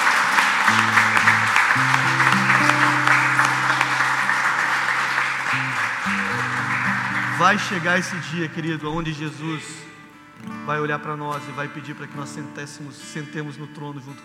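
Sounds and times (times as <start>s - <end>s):
round of applause: 0.0s - 8.4s
speech: 7.4s - 9.8s, 10.4s - 14.2s.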